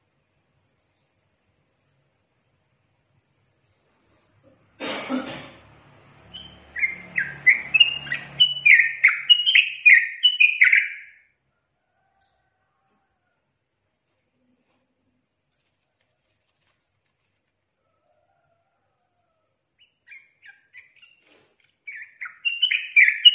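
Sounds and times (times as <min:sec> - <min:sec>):
Yellow-vented bulbul song: 0:06.2 - 0:11.4, 0:19.8 - 0:23.3.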